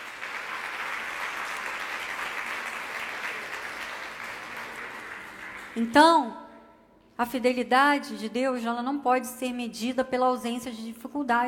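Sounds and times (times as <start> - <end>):
audience applauding: 0.0 - 5.9
speech: 5.8 - 6.4, 7.2 - 11.4.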